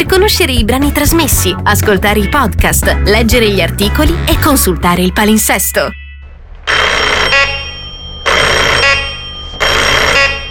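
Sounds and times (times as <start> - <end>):
speech: 0.0 - 6.0
faulty doorbell ringing: 5.9 - 10.4.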